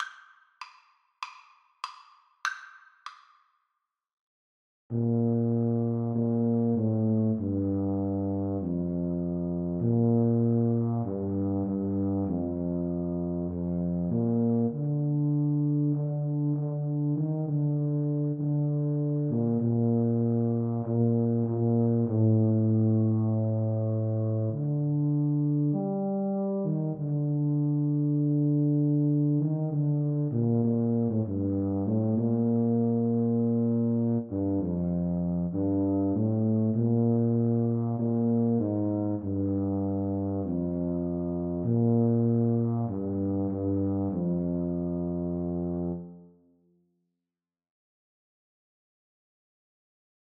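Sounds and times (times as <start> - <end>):
tuba duet: 4.9 - 46.4.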